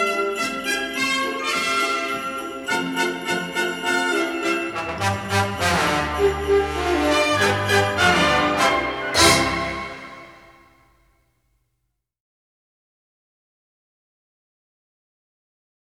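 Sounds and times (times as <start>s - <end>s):
orchestra playing: 0.2s - 10.7s.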